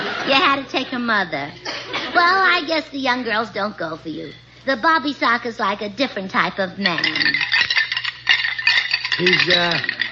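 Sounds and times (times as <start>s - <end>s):
speech: 0.2s - 7.4s, 9.2s - 10.0s
bones rattling: 6.8s - 10.1s.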